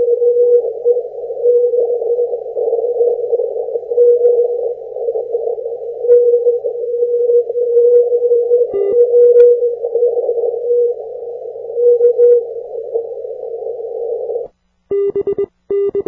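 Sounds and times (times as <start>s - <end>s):
80m CW radio signal with multi-path signal distortion: 0.0s - 16.0s.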